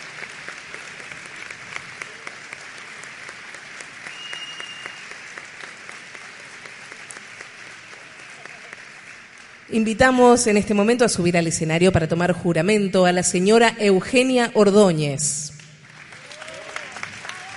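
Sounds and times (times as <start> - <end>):
audience applause: 0.0 - 9.7, 15.8 - 17.5
speech: 9.7 - 15.6.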